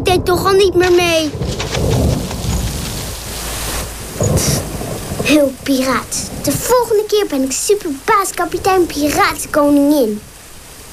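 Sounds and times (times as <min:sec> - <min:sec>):
thunder: 0:00.0 - 0:06.7
rain: 0:00.0 - 0:10.9
speech: 0:00.1 - 0:02.1, 0:04.2 - 0:10.3.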